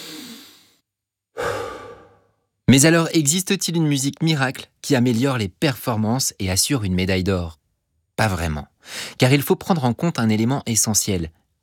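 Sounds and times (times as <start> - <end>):
heavy breathing while catching one's breath: 1.4 - 2.4
speech: 2.7 - 7.6, 8.2 - 11.4.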